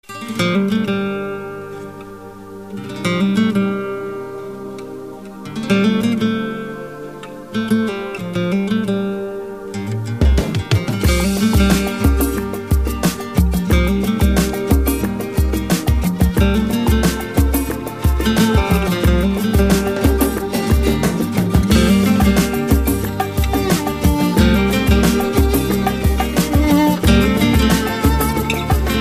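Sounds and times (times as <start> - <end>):
guitar: 0.0 - 29.0.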